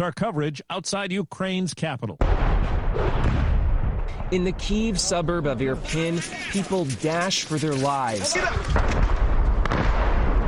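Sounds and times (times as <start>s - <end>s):
speech: 0.0s - 3.5s, 4.3s - 9.0s
artillery shells exploding: 2.2s - 7.8s, 8.5s - 10.4s.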